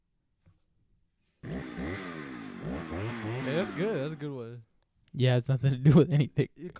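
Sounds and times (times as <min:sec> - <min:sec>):
car engine revving sound effect: 0:01.4 - 0:04.4
speech: 0:03.7 - 0:06.7.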